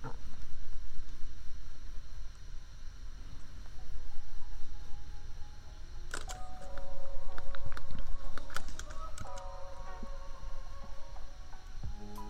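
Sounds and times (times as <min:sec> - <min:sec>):
laptop fan hum: 0:00.0 - 0:12.2
keyboard tapping: 0:06.1 - 0:10.0.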